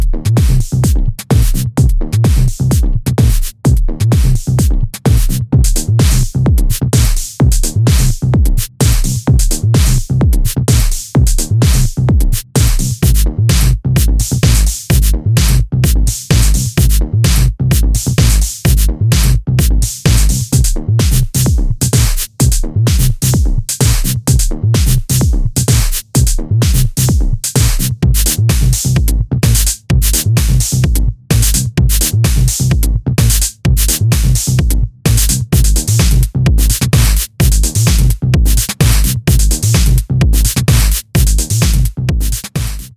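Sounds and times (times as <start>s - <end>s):
tech house music: 0.0s - 42.9s.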